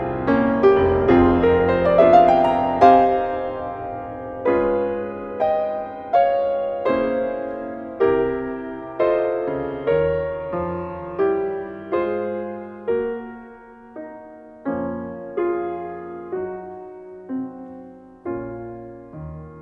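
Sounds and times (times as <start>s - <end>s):
piano nocturne in D-flat: 0.0s - 19.6s.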